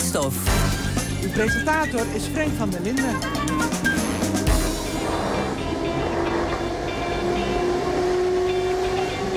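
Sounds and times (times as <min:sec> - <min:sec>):
speech: 0:00.1 - 0:03.9
train passing on rails in Afghanistan: 0:00.8 - 0:09.3.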